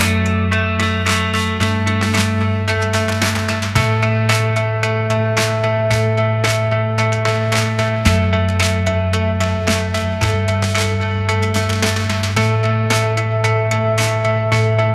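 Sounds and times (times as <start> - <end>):
rock anthem: 0.0 - 14.9.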